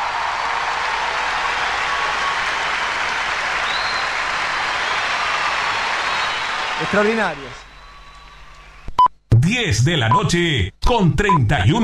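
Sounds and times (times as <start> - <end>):
applause: 0.0 - 8.4
speech: 6.8 - 7.6, 9.5 - 11.8.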